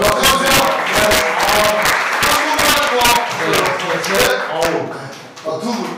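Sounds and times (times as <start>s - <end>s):
audience applause: 0.0s - 5.8s.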